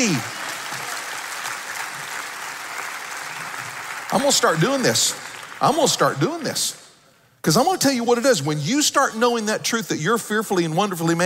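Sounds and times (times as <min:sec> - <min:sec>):
speech: 0:00.0 - 0:00.3, 0:04.1 - 0:06.8, 0:07.4 - 0:11.2
audience clapping hands: 0:00.0 - 0:06.6.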